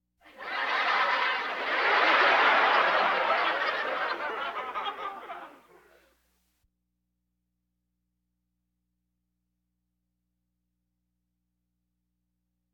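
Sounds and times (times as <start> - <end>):
audience laughter: 0.3 - 6.0.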